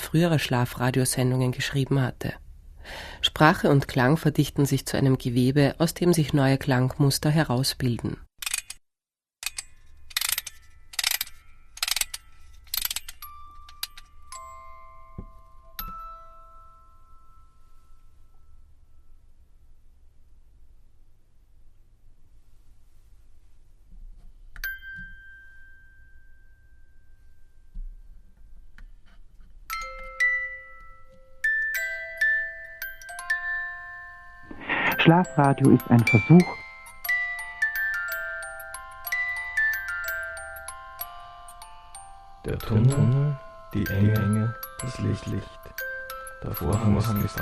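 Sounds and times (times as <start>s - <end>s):
speech: 0.1s - 8.3s, 35.1s - 36.6s, 42.5s - 45.8s, 46.4s - 47.4s
music box melody: 10.5s - 19.1s, 24.6s - 27.5s, 29.7s - 47.4s.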